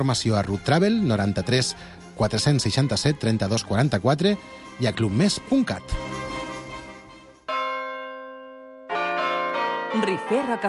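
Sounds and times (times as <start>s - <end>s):
speech: 0.0s - 6.2s, 10.3s - 10.6s
church bell ringing: 7.4s - 10.6s.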